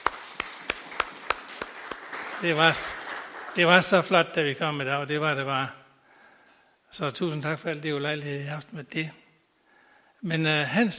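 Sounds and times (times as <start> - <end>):
audience applause: 0.0 - 4.2
speech: 2.4 - 3.0, 3.6 - 5.8, 6.9 - 9.2, 10.2 - 10.9.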